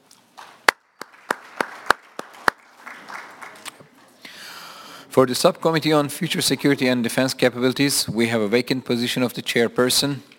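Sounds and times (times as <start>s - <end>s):
applause for election by acclamation from a small group: 0.4s - 4.0s
speech: 5.2s - 10.3s.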